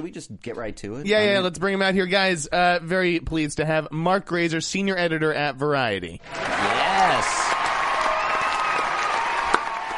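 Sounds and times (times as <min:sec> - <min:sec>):
speech: 0:00.0 - 0:07.5
canned applause from a crowd: 0:06.3 - 0:09.9.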